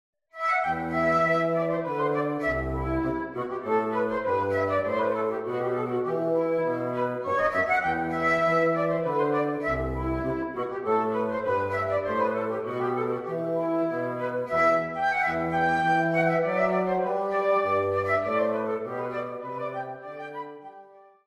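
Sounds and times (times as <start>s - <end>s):
wind quintet playing a hornpipe: 0.4s - 21.2s.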